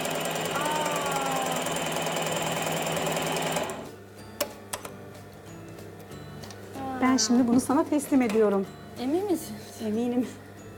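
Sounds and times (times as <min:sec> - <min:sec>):
sewing machine stitching knit fabric: 0:00.0 - 0:03.9
speech: 0:07.0 - 0:10.4.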